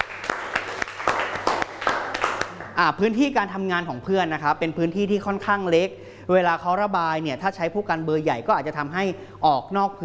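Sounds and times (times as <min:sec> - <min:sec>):
class applauding: 0:00.0 - 0:02.8
speech: 0:02.8 - 0:10.0.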